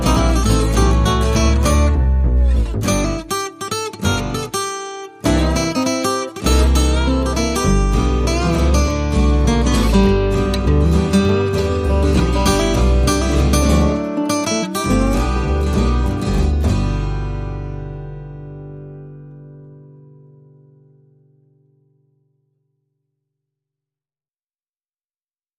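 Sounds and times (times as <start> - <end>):
backyard swing music without percussion: 0.0 - 18.7.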